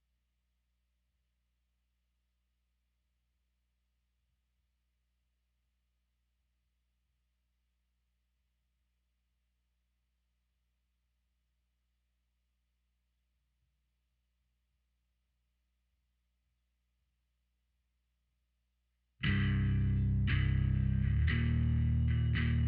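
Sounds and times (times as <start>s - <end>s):
bass: 19.2s - 22.6s.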